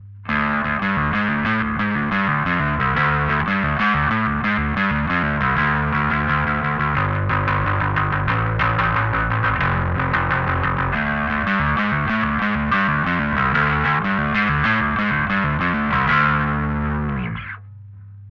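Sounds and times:
dry midboost distortion tone: 0.0s - 18.2s.

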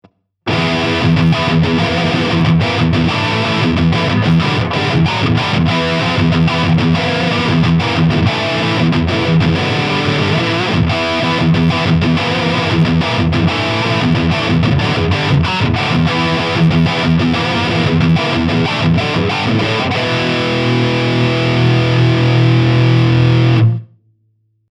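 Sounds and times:
Godin Summit Classic SG high gain electric guitar: 0.5s - 23.9s.

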